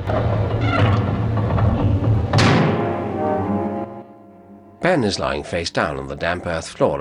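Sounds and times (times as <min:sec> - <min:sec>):
booming slam: 0:00.0 - 0:03.9
heavy doors sliding shut: 0:00.0 - 0:06.6
speech: 0:04.9 - 0:06.9.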